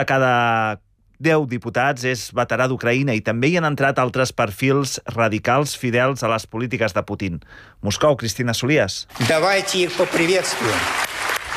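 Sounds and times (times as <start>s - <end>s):
speech: 0.0s - 11.3s
long ovation in the Russian State Duma welcoming war veterans: 9.1s - 11.5s.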